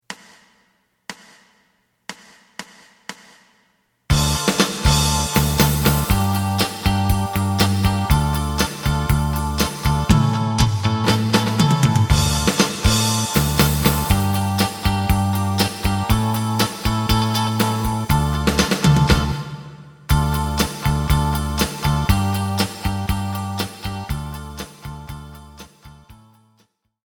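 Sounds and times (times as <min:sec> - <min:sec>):
lead melody: 0:04.1 - 0:25.6.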